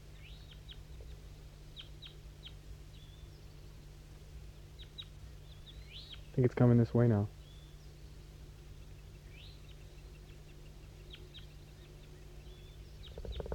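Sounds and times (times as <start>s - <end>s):
wild bird singing in the distance: 0.0s - 13.5s
speech: 6.4s - 7.4s.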